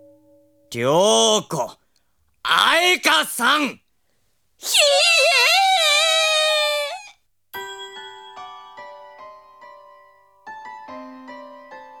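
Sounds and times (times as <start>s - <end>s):
speech: 0.7s - 1.7s, 3.2s - 3.8s
voice whimpering meow like a small cat creature: 4.6s - 7.2s.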